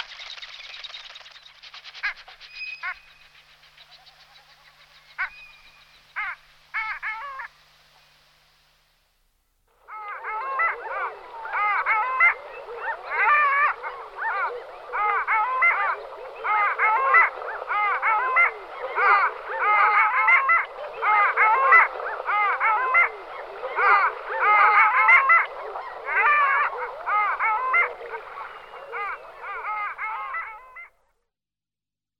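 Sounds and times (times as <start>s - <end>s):
long-tailed duck calling: 9.9s - 30.9s.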